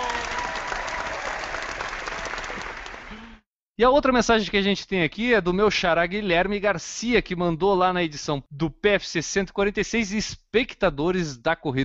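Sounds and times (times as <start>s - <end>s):
audience applause: 0.0s - 3.4s
speech: 3.8s - 11.8s.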